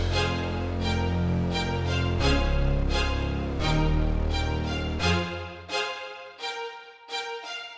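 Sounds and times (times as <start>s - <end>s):
power noise beat: 0.0s - 6.0s.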